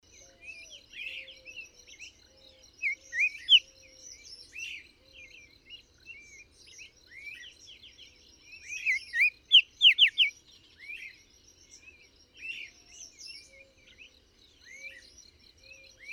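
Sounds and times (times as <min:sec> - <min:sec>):
bird song chirps and whistles: 0:00.6 - 0:05.5, 0:08.4 - 0:16.1.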